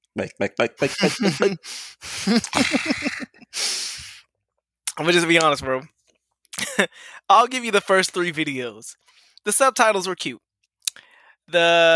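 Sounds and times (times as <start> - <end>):
speech: 0.2 - 3.7, 5.0 - 6.0, 6.6 - 10.4, 11.5 - 11.9
gulping: 0.6 - 3.5
laughter: 0.6 - 3.8
person sighing: 0.8 - 4.2
person drinking water: 1.1 - 4.2.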